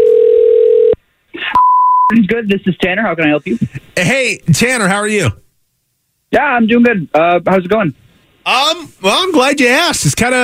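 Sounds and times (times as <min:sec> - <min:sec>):
telephone dial tone as a call is placed to a call centre: 0:00.0 - 0:01.0
speech: 0:02.3 - 0:05.4, 0:06.3 - 0:10.4.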